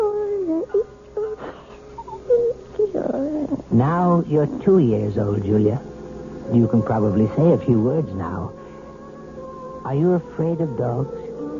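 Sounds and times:
baby whimpering: 0.0 - 3.8
speech: 3.8 - 5.9, 6.5 - 8.6, 9.8 - 11.2.

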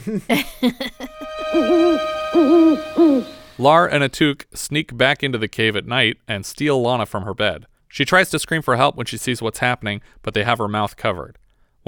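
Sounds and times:
speech: 0.0 - 1.0, 2.4 - 11.8
laughter: 0.0 - 1.9
creature hooting like an owl: 1.0 - 3.6.

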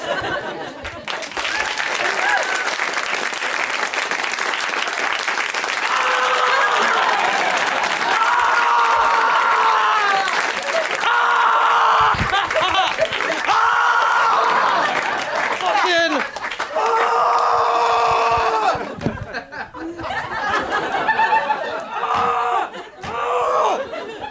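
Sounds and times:
laughter: 0.0 - 2.6, 6.0 - 24.3
audience applause: 0.0 - 24.3
whoops and cheers: 1.4 - 2.9, 5.8 - 7.4, 8.0 - 14.8, 16.7 - 18.9.

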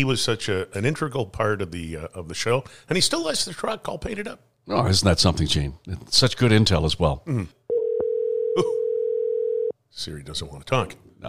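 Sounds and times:
speech: 0.0 - 7.6, 10.0 - 11.2
telephone dial tone: 7.7 - 9.7.

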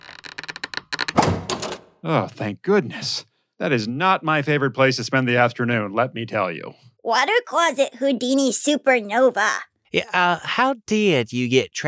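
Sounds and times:
stuck frozen door being forced open: 0.0 - 1.7
speech: 2.0 - 11.8.

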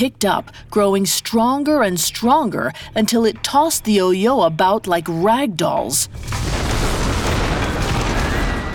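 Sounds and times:
speech: 0.0 - 7.2
thunder booming: 6.2 - 8.7.

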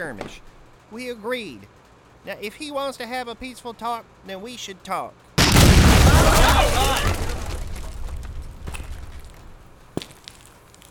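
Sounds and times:
speech: 0.0 - 5.3
door being smashed open: 5.4 - 8.0.

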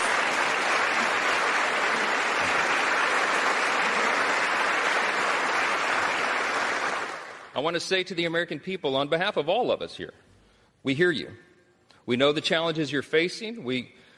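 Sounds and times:
applause: 0.0 - 7.7
speech: 7.6 - 10.2, 10.8 - 14.0.

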